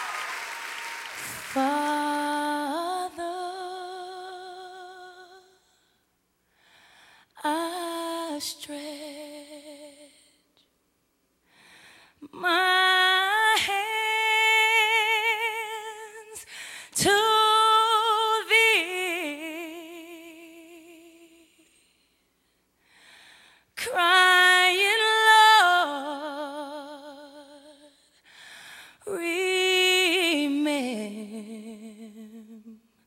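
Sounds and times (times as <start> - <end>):
a cappella intro prayer singing: 1.2 - 5.6, 12.2 - 21.6, 23.8 - 27.9, 29.0 - 32.8.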